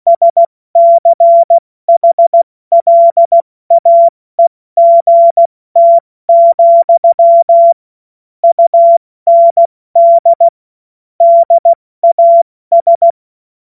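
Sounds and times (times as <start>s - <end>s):
morse code beeps: 0.1s - 7.8s, 8.4s - 10.6s, 11.2s - 13.2s.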